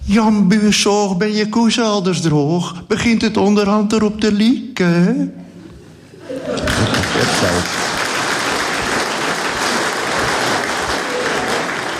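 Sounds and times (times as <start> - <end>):
speech: 0.1 - 5.4, 6.4 - 7.8
laughter: 5.6 - 8.0
audience applause: 6.3 - 11.9.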